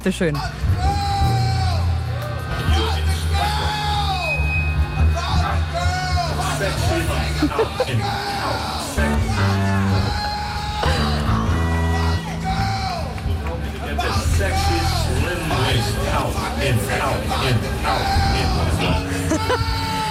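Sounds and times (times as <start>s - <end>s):
speech: 0.0s - 0.7s, 6.6s - 9.2s
live concert music: 0.0s - 20.0s
crowd cheering and whooping: 0.8s - 13.3s, 17.9s - 20.0s
laughter: 6.3s - 10.1s, 14.0s - 20.0s.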